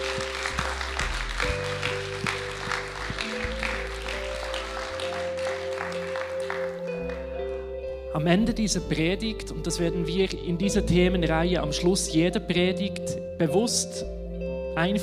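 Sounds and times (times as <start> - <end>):
audience applause: 0.0 - 7.3
speech: 8.2 - 14.2, 14.8 - 15.0.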